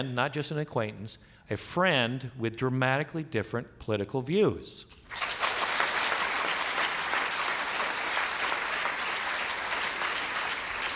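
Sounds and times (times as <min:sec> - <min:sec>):
speech: 0:00.0 - 0:05.4
audience clapping: 0:04.9 - 0:10.9.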